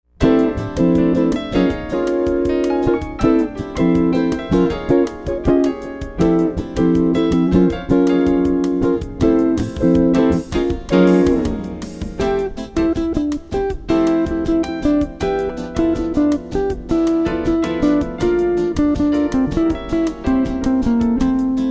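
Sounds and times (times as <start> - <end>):
instrumental music with guitar: 0.2 - 21.6.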